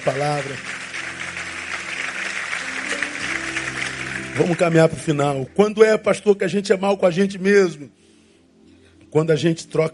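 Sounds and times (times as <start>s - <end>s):
speech: 0.0s - 0.8s, 4.4s - 8.0s, 9.1s - 9.9s
audience applause: 0.0s - 5.0s.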